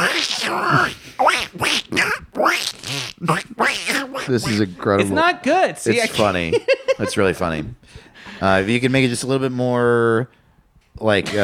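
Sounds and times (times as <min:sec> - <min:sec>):
voice imitating Donald Duck: 0:00.0 - 0:04.8
speech: 0:00.2 - 0:02.1, 0:04.3 - 0:10.4, 0:11.0 - 0:11.4.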